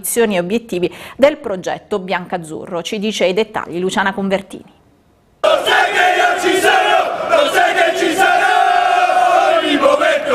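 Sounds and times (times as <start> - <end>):
speech: 0.0 - 4.8
large crowd of football ultras chanting in unison: 5.4 - 10.3.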